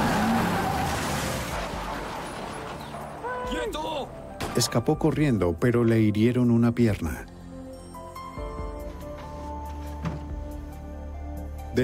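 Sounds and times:
engine and road noise rumble: 0.0 - 3.4
car skidding with tire squeal: 0.0 - 3.5
speech: 3.7 - 7.3.

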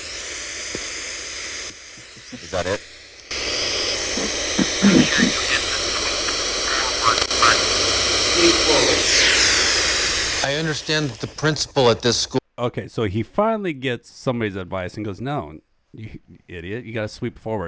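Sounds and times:
radio static from sweep mode: 0.0 - 12.4
speech: 2.3 - 2.9, 4.8 - 5.6, 10.4 - 17.6.

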